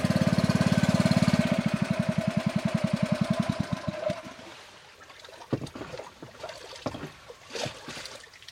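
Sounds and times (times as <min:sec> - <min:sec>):
boat motor running: 0:00.0 - 0:04.7
water lapping and splashing: 0:00.0 - 0:08.5.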